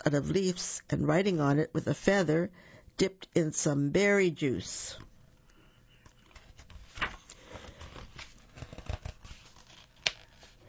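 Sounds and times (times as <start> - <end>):
speech: 0.0 - 5.1
page of a children's picture book turning: 6.0 - 10.6.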